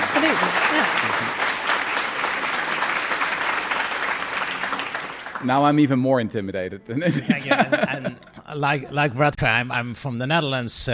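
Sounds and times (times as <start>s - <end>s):
audience round of applause: 0.0s - 5.8s
speech: 0.2s - 1.0s, 5.4s - 10.9s
laughter: 6.9s - 9.4s.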